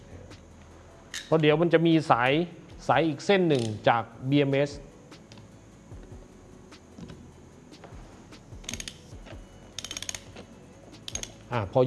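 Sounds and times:
low mechanical background: 0.0s - 11.8s
speech: 1.3s - 4.9s, 11.6s - 11.8s
ratchet wrench tightening a nut on a cable connection for a BMS: 3.5s - 3.8s, 8.6s - 11.5s.

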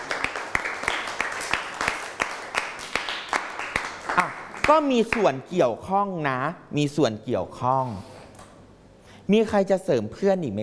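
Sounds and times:
students clapping in a classroom: 0.0s - 5.3s
speech: 4.7s - 8.1s, 9.3s - 10.6s.

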